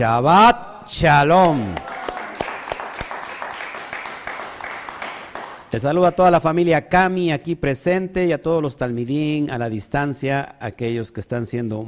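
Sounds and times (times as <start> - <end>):
speech: 0.0 - 1.9, 5.7 - 11.8
group applause: 1.4 - 5.8.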